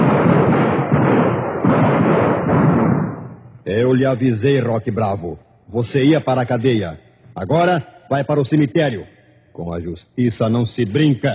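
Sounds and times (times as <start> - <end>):
rapid gunfire: 0.0 - 3.5
speech: 3.7 - 11.3.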